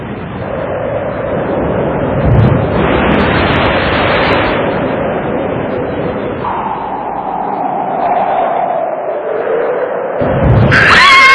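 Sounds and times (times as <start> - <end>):
rain in a thunderstorm: 0.0 - 8.2
thunder rumble: 0.0 - 11.2.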